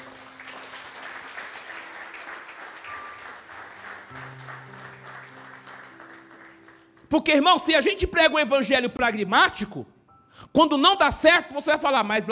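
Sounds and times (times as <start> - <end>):
audience applauding: 0.0 - 7.1
speech: 7.1 - 9.9, 10.5 - 12.2.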